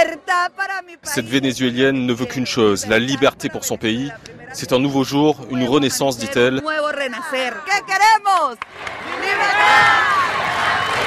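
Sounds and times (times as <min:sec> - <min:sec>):
speech: 0:00.3 - 0:10.4
large crowd chanting and cheering in front of a main stage: 0:08.7 - 0:11.0.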